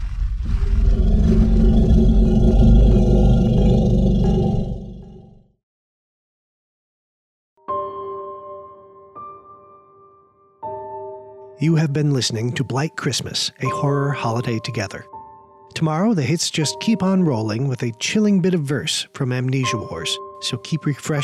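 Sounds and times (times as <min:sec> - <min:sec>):
animal growling: 0:00.0 - 0:05.6
speech: 0:11.6 - 0:15.2, 0:15.8 - 0:21.2.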